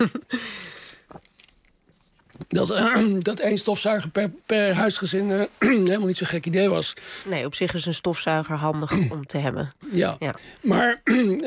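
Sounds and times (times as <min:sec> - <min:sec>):
speech: 0:00.0 - 0:00.6, 0:02.5 - 0:11.4
sipping and swallowing water: 0:00.4 - 0:02.5.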